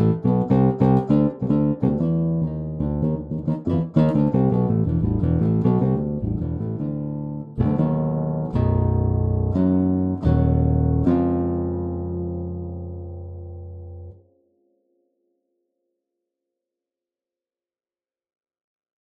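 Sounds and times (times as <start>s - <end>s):
string bass: 0.0s - 14.2s.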